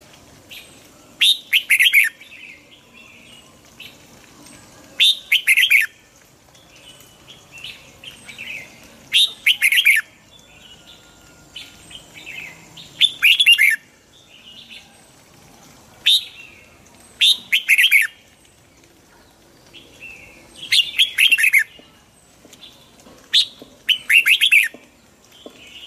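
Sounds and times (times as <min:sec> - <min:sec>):
red-whiskered bulbul singing warbled phrases: 0:00.5 - 0:15.0, 0:16.0 - 0:25.8.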